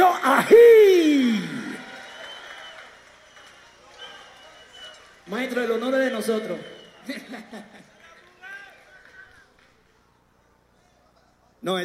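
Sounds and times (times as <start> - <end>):
person whooping loudly over the crowd: 0.0 - 2.0
audience cheering and applauding: 0.0 - 9.9
laughter: 6.8 - 8.4
speech: 11.6 - 11.8.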